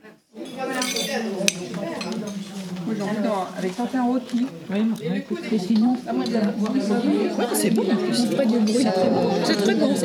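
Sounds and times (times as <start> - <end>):
plates and cutlery clinking at a shared meal: 0.4 - 3.3
speech: 2.9 - 10.0.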